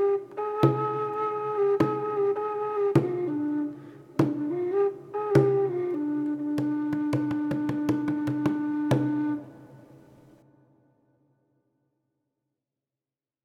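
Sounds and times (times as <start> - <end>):
jazz whistle: 0.0 - 9.8.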